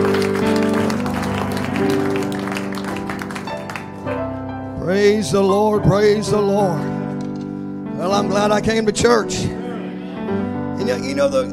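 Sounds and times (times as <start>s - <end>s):
audience clapping: 0.0s - 4.3s
speech: 5.0s - 6.9s, 8.0s - 9.6s, 10.3s - 11.5s.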